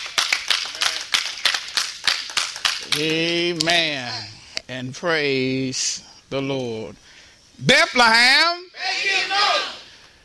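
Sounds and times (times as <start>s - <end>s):
audience clapping in praise: 0.0s - 3.5s
speech: 2.9s - 7.0s, 7.6s - 9.6s.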